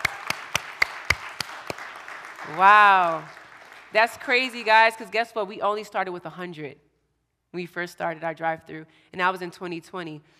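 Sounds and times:
hand clapping: 0.0s - 4.2s
speech: 2.5s - 6.8s, 7.5s - 10.3s.

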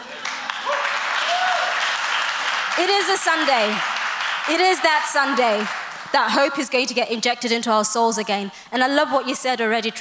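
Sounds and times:
audience applause: 0.0s - 6.1s
speech: 2.8s - 3.9s, 4.5s - 9.9s.

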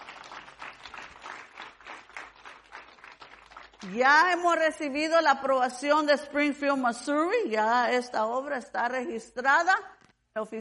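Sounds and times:
audience applause: 0.0s - 3.9s
speech: 3.8s - 10.6s.

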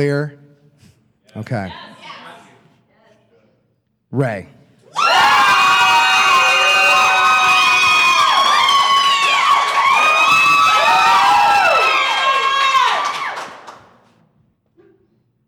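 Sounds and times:
speech: 0.0s - 0.4s, 1.3s - 1.9s, 4.1s - 4.6s
audience cheering and whooping for a contestant: 4.9s - 13.8s
audience applause: 5.2s - 14.1s.

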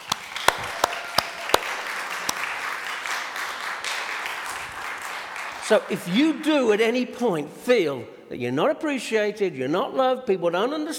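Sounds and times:
crowd applauding in a large room: 0.0s - 6.7s
speech: 5.7s - 10.9s.

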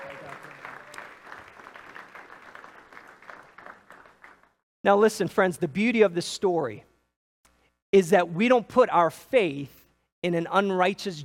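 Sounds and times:
audience applause: 0.0s - 4.6s
speech: 4.8s - 6.9s, 7.9s - 11.2s.

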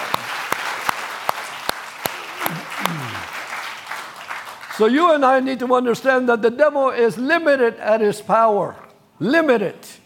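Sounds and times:
audience clapping: 0.0s - 5.2s
speech: 4.8s - 10.0s.

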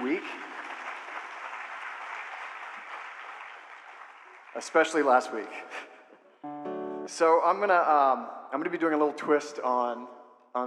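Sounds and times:
round of applause for volunteers: 0.0s - 5.5s
speech: 4.6s - 5.9s, 7.1s - 10.6s.

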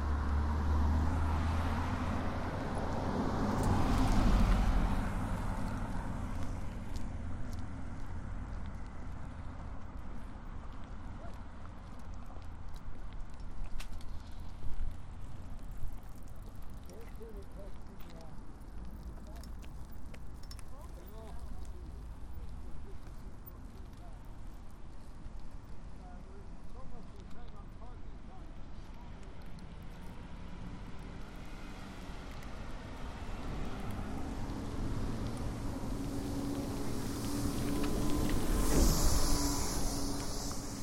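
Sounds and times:
traffic rumble in Marpole: 0.0s - 40.8s.

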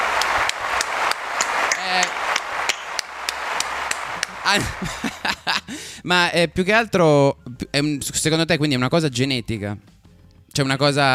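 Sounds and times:
rhythmic applause: 0.0s - 6.0s
laughter: 4.0s - 5.9s
speech: 4.5s - 9.9s, 10.6s - 11.1s.

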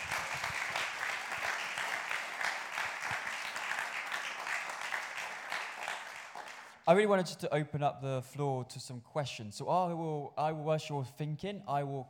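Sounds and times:
crowd applause: 0.0s - 6.8s
speech: 6.9s - 12.0s.

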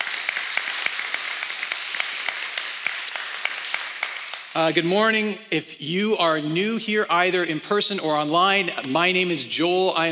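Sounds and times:
church audience applause: 0.0s - 4.7s
speech: 4.6s - 10.1s.

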